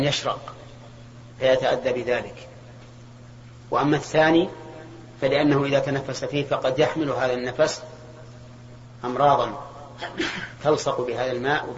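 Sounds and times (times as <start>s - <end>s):
speech: 0.0s - 0.7s, 1.4s - 2.5s, 3.7s - 4.6s, 5.2s - 7.9s, 9.0s - 11.7s
low steady hum: 0.0s - 11.7s
sneeze: 10.0s - 10.6s.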